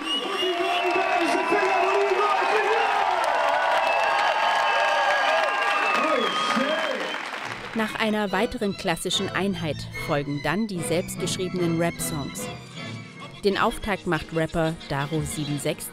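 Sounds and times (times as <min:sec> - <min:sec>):
audience cheers and whoops: 0:00.0 - 0:07.4
audience applauding: 0:00.0 - 0:08.0
speech: 0:07.8 - 0:12.7, 0:13.4 - 0:15.9.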